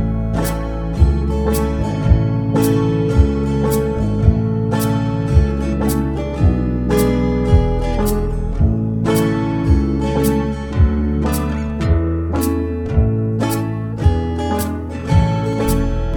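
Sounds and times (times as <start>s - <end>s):
slow banjo backing track: 0.0s - 16.1s.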